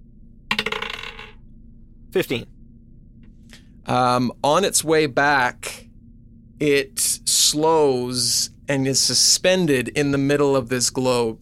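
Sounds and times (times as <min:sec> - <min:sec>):
twenty-sided die clattering across a tabletop: 0:00.5 - 0:01.4
speech: 0:02.1 - 0:02.6, 0:03.9 - 0:05.8, 0:06.6 - 0:11.4.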